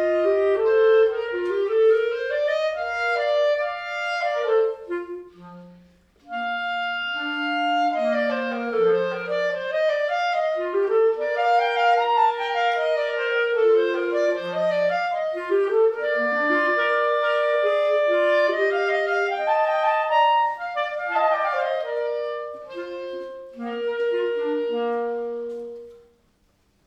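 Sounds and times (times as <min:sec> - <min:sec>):
clarinet duet: 0:00.0 - 0:26.8.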